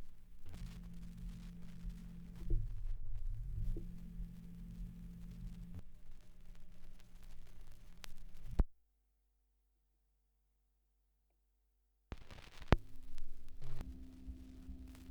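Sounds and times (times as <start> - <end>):
78rpm record surface noise: 0.0 - 8.7, 12.1 - 15.1.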